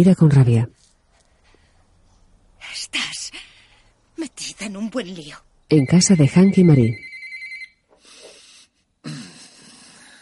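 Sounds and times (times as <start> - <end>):
speech: 0.0 - 0.8, 4.2 - 7.1
telephone ringing with electronic trill: 5.7 - 7.8.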